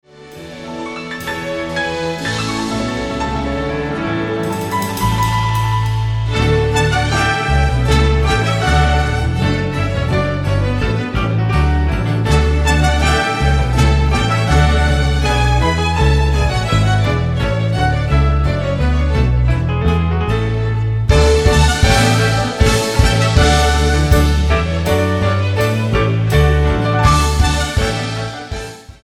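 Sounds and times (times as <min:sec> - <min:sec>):
jazz techno music: 0:00.3 - 0:18.8, 0:19.6 - 0:29.0.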